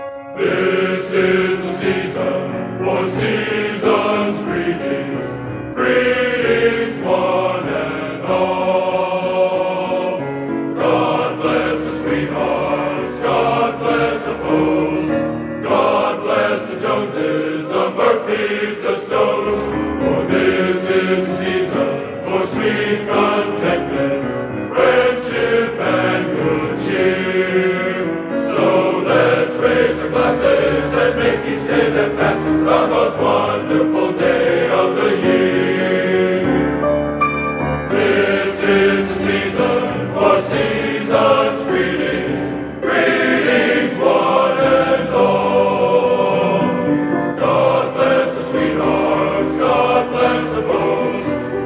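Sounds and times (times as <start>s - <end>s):
men's glee club singing Christmas music: 0.3s - 36.8s, 37.9s - 51.6s.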